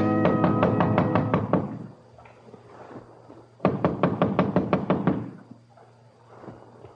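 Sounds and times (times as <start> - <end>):
loud rapid knocking on a door: 0.2 - 1.7, 3.6 - 5.3.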